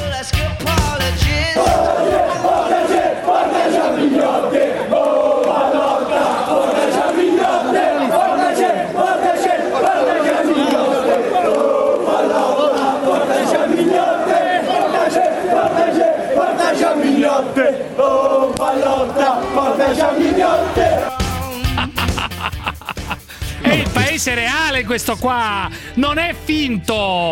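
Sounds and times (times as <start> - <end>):
football fans chanting and cheering: 0.0 - 22.5, 23.2 - 25.6
laughter: 1.6 - 3.1, 18.7 - 24.4
speech: 24.2 - 27.3.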